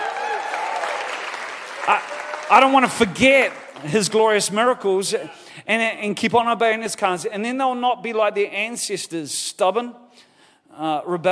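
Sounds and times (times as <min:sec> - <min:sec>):
audience clapping in praise: 0:00.0 - 0:04.4
speech: 0:01.9 - 0:11.2.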